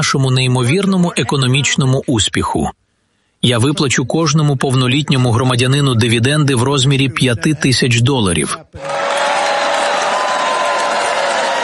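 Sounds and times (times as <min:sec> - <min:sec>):
speech: 0:00.0 - 0:02.8, 0:03.4 - 0:09.3
restrained applause from supporters: 0:08.8 - 0:11.6.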